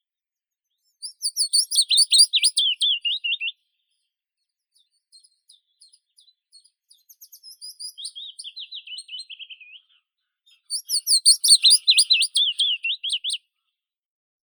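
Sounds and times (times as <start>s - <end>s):
Phylloscopus trochilus willow warbler singing: 0.9s - 3.5s, 5.1s - 9.9s, 10.5s - 13.4s.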